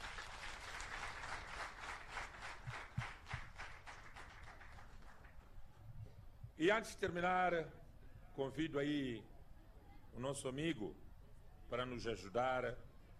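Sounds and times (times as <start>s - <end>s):
round of applause: 0.0s - 5.6s
speech: 6.6s - 7.8s, 8.4s - 9.3s, 10.1s - 11.0s, 11.7s - 12.8s.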